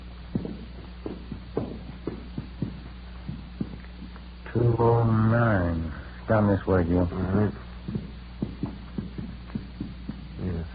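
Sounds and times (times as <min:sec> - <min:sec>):
footsteps climbing hotel stairs: 0:00.0 - 0:04.9, 0:06.6 - 0:10.7
constant low hum: 0:00.0 - 0:10.7
speech: 0:04.6 - 0:08.0.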